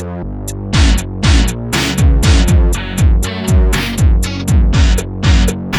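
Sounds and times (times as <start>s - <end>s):
arpeggio: 0.7s - 5.6s.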